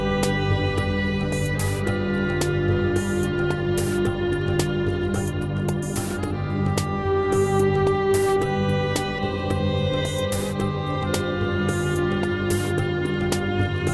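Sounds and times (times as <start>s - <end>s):
didgeridoo: 0.0s - 13.9s.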